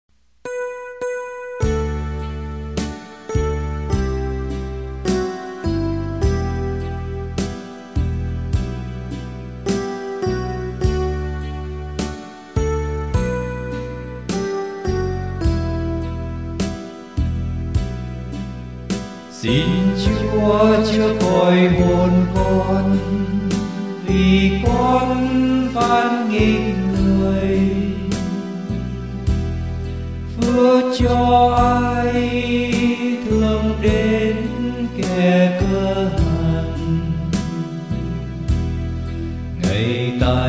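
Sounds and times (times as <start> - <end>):
bass: 0.0 - 40.4.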